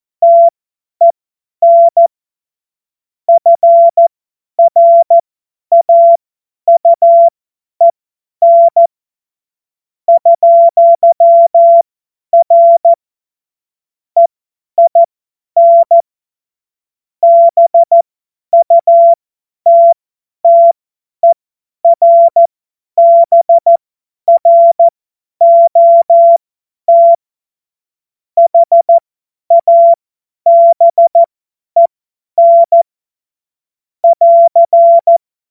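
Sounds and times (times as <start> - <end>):
CW Morse code beeps: 0.2 - 2.1, 3.3 - 4.0, 4.6 - 7.3, 8.4 - 8.9, 10.1 - 11.8, 12.4 - 13.0, 14.2 - 16.0, 17.2 - 18.0, 18.6 - 27.2, 28.4 - 32.8, 34.0 - 35.2.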